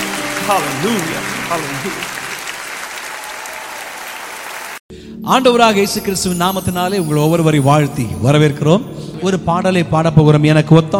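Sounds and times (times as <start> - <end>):
church congregation clapping in praise of the Holy Spirit: 0.0 - 4.8
speech: 0.5 - 2.2, 5.2 - 10.9.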